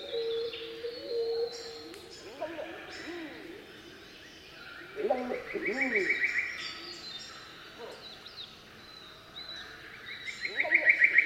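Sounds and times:
Pacific emerald dove singing in tropical rainforest: 0.0s - 3.9s, 4.8s - 6.4s, 10.5s - 11.2s.

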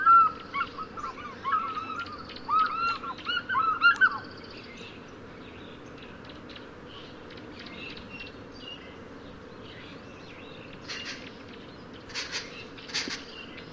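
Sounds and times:
several African fish eagles yelping: 0.0s - 4.2s.

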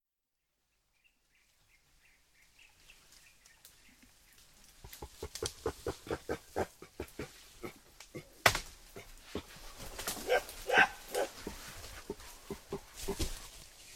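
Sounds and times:
mountain gorilla grunts: 4.8s - 13.4s.

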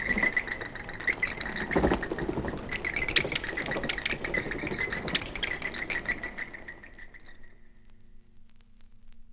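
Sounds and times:
bats squeaking: 0.0s - 7.4s.

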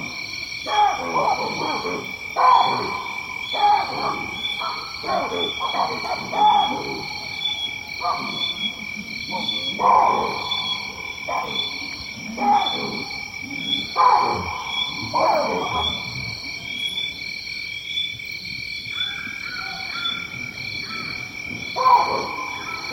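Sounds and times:
lion roaring in deep grunting pulses in Tanzania: 0.7s - 16.9s, 21.6s - 22.9s.

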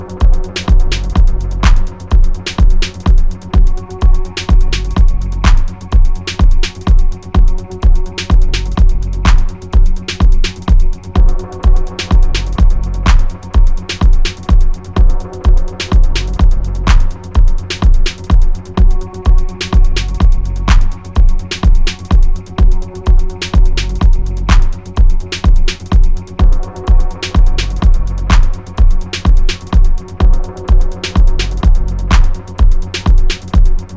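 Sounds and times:
real drums playing: 0.0s - 33.9s.

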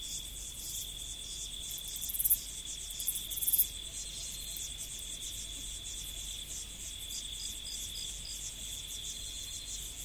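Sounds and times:
insects trilling high-pitched in prairie: 0.0s - 10.0s.

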